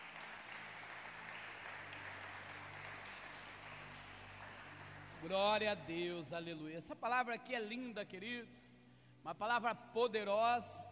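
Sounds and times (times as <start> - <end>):
audience applause: 0.0 - 5.8
speech: 5.2 - 10.8.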